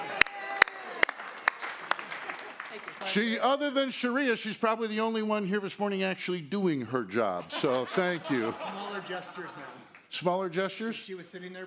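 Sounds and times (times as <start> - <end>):
audience clapping at a church gathering: 0.0 - 3.4, 9.3 - 10.1
speech: 3.0 - 11.6
laughter: 7.2 - 9.9.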